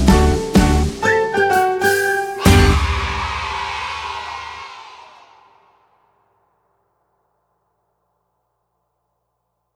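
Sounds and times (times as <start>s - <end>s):
playback song melody: 0.1s - 3.3s.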